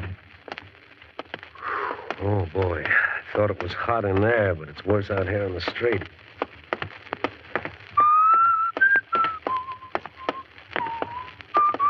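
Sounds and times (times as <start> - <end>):
speech: 2.2 - 6.2
person whistling a song: 8.0 - 11.8.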